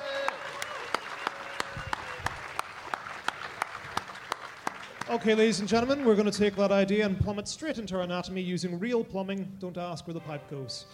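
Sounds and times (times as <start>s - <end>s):
audience applause: 0.0s - 6.7s
speech: 5.1s - 10.9s.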